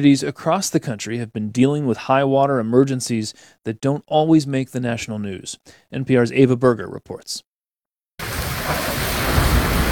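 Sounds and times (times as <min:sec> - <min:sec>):
speech: 0:00.0 - 0:07.5
heavy rain gushing during a storm in Tucson, Arizona: 0:08.2 - 0:09.9.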